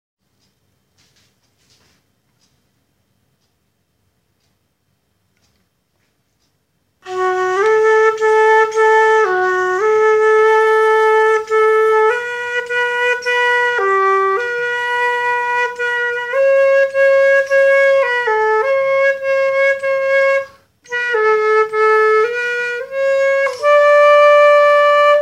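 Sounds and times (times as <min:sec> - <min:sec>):
flute: 0:07.0 - 0:25.2.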